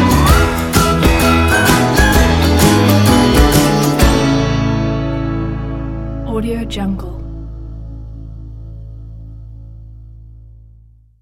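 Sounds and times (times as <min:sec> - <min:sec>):
happy uplifting fun music: 0:00.0 - 0:07.4.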